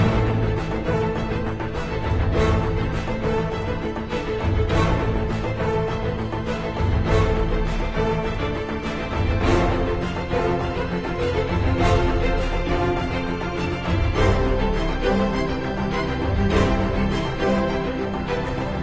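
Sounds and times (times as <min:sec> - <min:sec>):
idle ambient music: 0:00.0 - 0:18.8.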